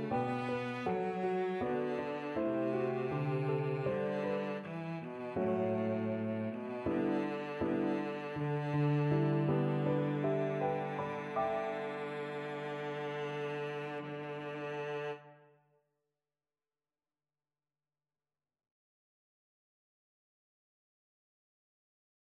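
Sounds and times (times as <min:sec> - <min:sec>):
cello: 0:00.0 - 0:15.6.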